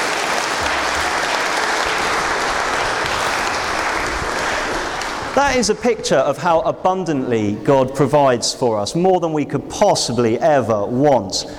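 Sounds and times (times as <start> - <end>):
audience applause: 0.0 - 5.9
speech: 5.4 - 11.5.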